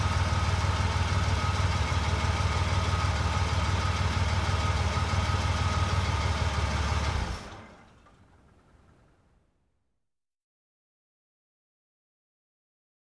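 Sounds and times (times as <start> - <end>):
car engine shutting off: 0.0 - 9.5.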